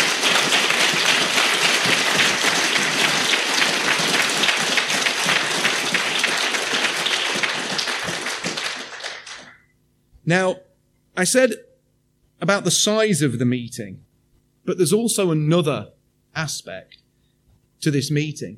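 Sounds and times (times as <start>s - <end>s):
crowd applauding: 0.0s - 9.7s
speech: 10.3s - 10.6s, 11.2s - 11.7s, 12.4s - 17.0s, 17.8s - 18.5s.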